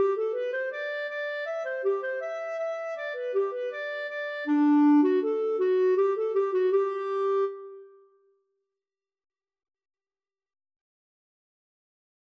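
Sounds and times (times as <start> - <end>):
folk walking tune: 0.0 - 7.8.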